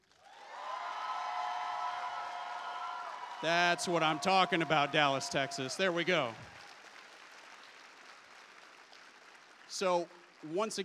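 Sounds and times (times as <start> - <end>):
audience applause: 0.0 - 10.8
cheering voices: 0.3 - 6.8
speech: 3.4 - 6.5, 9.8 - 10.8.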